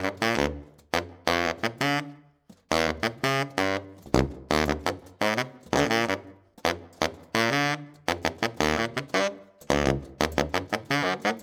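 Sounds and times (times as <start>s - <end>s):
saxophone: 0.0s - 11.4s.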